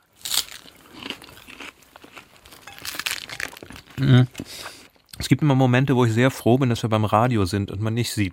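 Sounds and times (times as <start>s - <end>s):
crunchy bite into lettuce wrap: 0.0s - 4.1s
speech: 4.0s - 4.7s, 5.3s - 8.3s.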